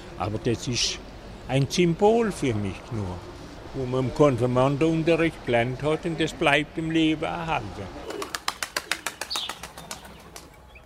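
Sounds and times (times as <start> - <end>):
speech: 0.2 - 8.0
pigeons at a main railway station flapping wings taking off: 8.0 - 10.6.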